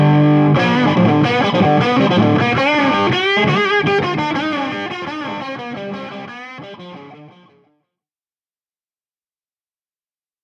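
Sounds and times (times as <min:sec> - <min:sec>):
Stratocaster electric guitar clean high gain fat tone: 0:00.0 - 0:07.7.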